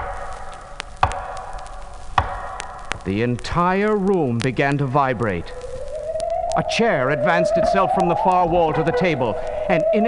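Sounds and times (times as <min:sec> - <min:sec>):
sharp knocks: 0:01.0 - 0:01.4, 0:02.2 - 0:02.8
speech: 0:03.0 - 0:05.6, 0:06.6 - 0:10.0.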